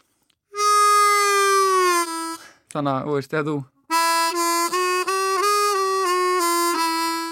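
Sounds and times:
bent note on a harmonica: 0.5s - 2.6s, 3.9s - 7.2s
speech: 2.8s - 3.8s.

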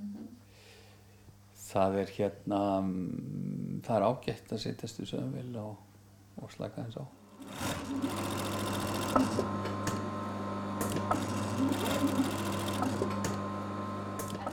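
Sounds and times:
speech: 1.7s - 8.4s, 9.2s - 9.6s
sewing machine sewing a flag: 7.2s - 14.5s.

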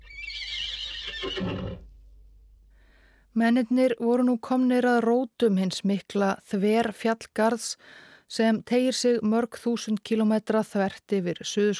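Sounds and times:
horse Sox whinnying on an Antarctic expedition: 0.0s - 1.9s
speech: 3.4s - 11.7s.

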